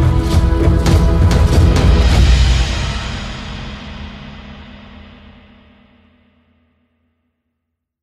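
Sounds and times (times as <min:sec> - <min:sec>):
Egyptian ceremonial music: 0:00.0 - 0:05.4.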